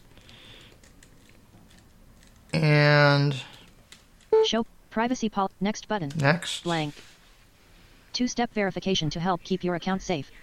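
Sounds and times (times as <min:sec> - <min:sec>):
password being typed on a computer keyboard: 0:00.1 - 0:02.6
speech: 0:02.6 - 0:03.5, 0:04.5 - 0:07.1, 0:08.2 - 0:10.4.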